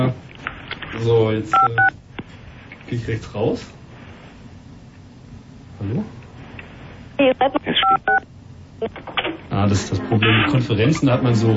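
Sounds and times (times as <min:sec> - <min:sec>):
speech: 0:01.0 - 0:02.0, 0:02.9 - 0:03.8, 0:05.8 - 0:06.2, 0:07.2 - 0:11.5
DTMF telephone keypad dialing tones: 0:07.8 - 0:08.2.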